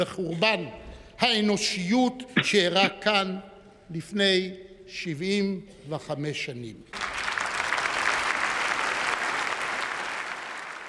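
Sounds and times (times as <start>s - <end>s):
speech: 0.0s - 7.0s
audience applause for a speech by the president: 6.9s - 10.8s.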